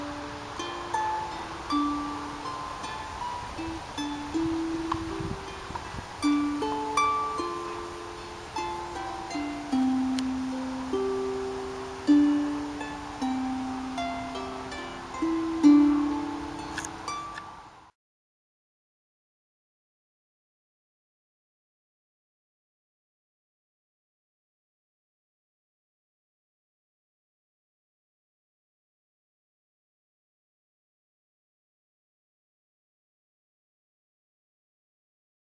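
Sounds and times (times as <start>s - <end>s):
harp: 0.0s - 17.9s.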